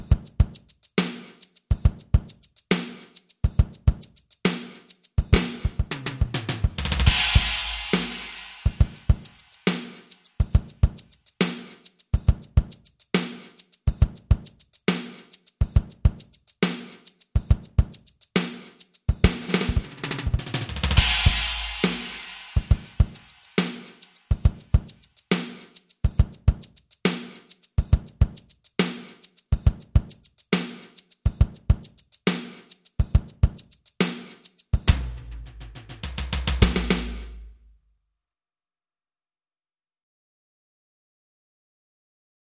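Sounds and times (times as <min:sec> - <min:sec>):
Afro Cuban drum kit loop: 0:00.0 - 0:37.6.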